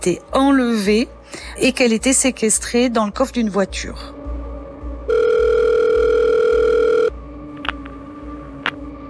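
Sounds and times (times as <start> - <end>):
speech: 0.0 - 4.2
telephone ringing: 5.1 - 8.8
faint clicks: 7.6 - 8.9.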